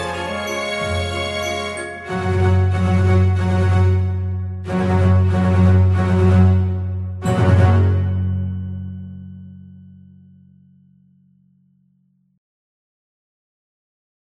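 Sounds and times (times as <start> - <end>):
orchestra: 0.0 - 9.1.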